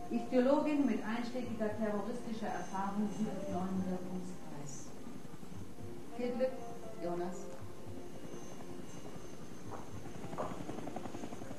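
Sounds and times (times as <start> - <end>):
speech: 0.1 - 4.9, 6.2 - 7.5
helicopters approaching: 7.8 - 11.5.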